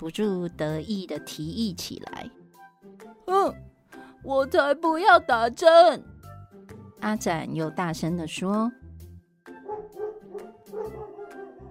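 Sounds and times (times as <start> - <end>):
speech: 0.0 - 2.4, 3.3 - 6.1, 7.0 - 8.8
dog barking aggressively: 9.6 - 11.6.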